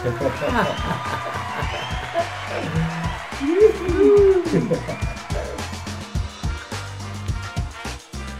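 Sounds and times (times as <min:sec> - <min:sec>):
speech: 0:00.0 - 0:01.9, 0:02.5 - 0:05.2
laughter: 0:00.0 - 0:06.0
applause: 0:00.0 - 0:08.1.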